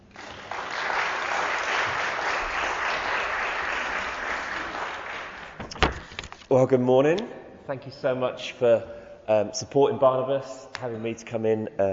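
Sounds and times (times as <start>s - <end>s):
church congregation at a morning service applauding a visiting speaker: 0.0s - 6.3s
speech: 6.5s - 11.9s.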